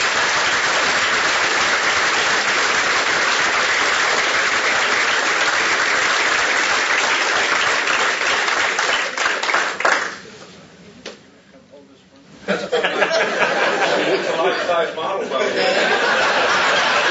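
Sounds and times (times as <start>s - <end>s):
audience applause: 0.0s - 10.2s, 15.8s - 17.1s
laughter: 12.4s - 17.1s.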